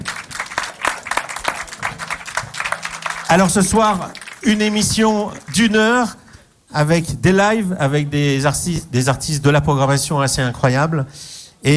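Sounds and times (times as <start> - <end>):
audience applause: 0.0 - 5.8
speech: 3.3 - 6.2, 6.8 - 11.7.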